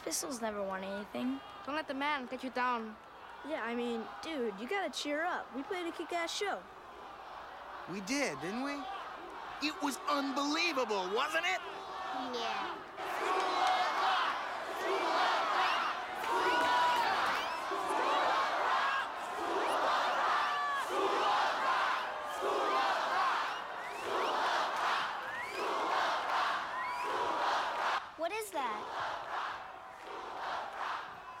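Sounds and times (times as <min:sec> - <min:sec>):
large crowd cheering and chanting for an encore: 0:00.0 - 0:31.3
speech: 0:00.1 - 0:06.8, 0:07.9 - 0:09.0, 0:09.6 - 0:13.1
sharp whistle: 0:25.2 - 0:25.7.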